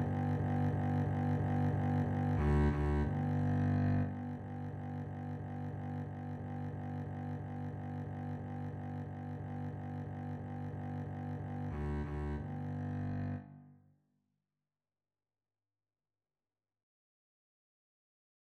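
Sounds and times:
double bass duet: 0.0s - 13.5s.

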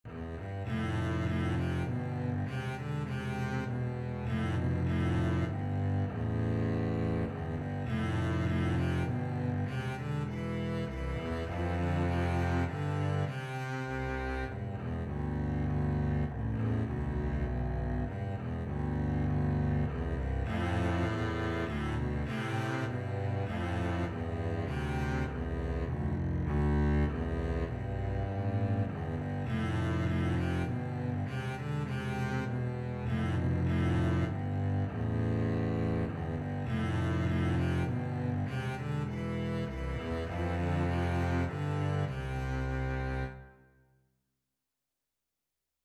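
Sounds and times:
double bass duet: 0.0s - 43.6s.

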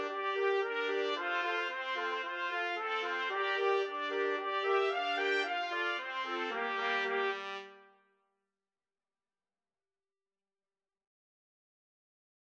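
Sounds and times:
four trumpets playing: 0.0s - 7.9s.

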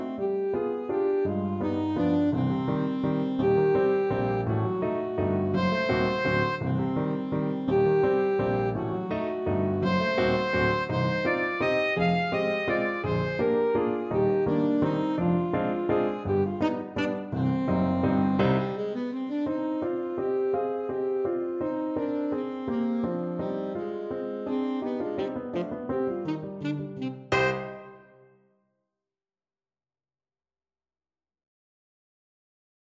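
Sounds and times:
saxophone playing: 0.0s - 28.4s.

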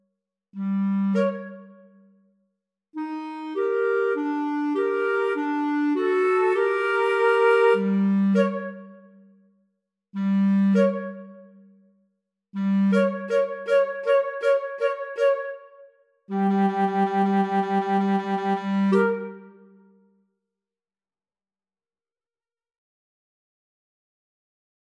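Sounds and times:
two flutes playing a classical piece: 0.7s - 1.8s, 3.0s - 9.0s, 10.2s - 11.4s, 12.6s - 19.7s.

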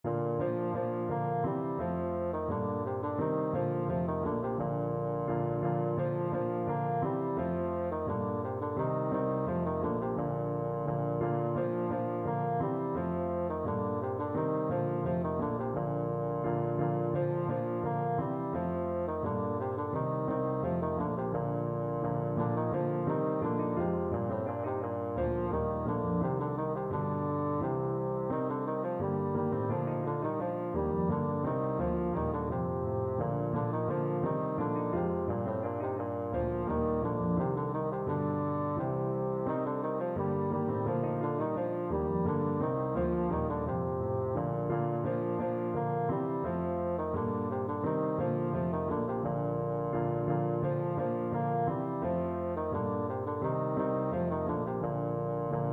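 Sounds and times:
bassoon playing a branle dance tune: 0.0s - 55.7s.

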